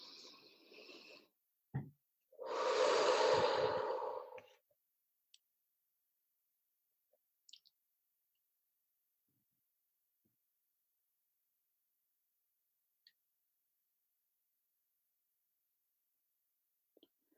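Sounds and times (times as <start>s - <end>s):
person breathing in during a guided breathing exercise: 2.4s - 4.6s.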